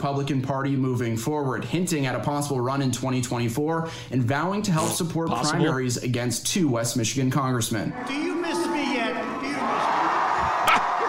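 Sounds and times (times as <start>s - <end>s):
speech: 0.0s - 8.6s
raucous crowd of supporters cheering: 7.9s - 11.0s
whoops and shouts: 10.0s - 11.0s.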